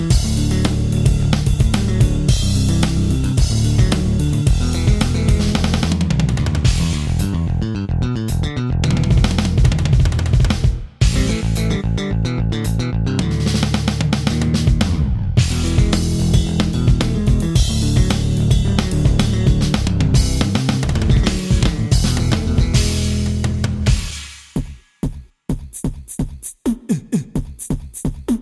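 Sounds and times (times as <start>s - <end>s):
BOSS Dr. Rythm DR-880 drum machine: 0.0s - 7.5s, 8.3s - 28.3s.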